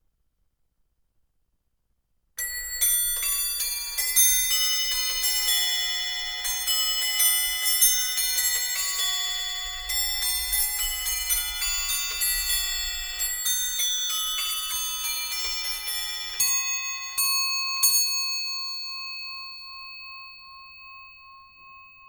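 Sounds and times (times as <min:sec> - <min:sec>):
organ clock: 0:02.4 - 0:18.9.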